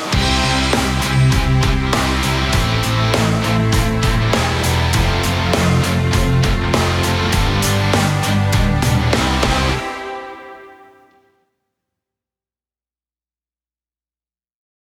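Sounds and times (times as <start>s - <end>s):
karaoke singing: 0.2s - 10.6s.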